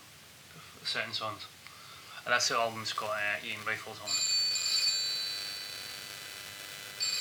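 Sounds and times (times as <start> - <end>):
speech: 0.9 - 1.6, 2.2 - 4.2
telephone ringing: 4.1 - 7.1.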